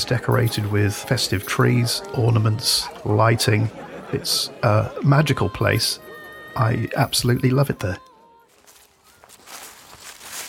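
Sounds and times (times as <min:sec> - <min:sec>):
laughter: 0:00.0 - 0:08.0
speech: 0:00.0 - 0:08.1
footsteps of a person strolling along a walk at a festive decorated site: 0:08.0 - 0:10.4.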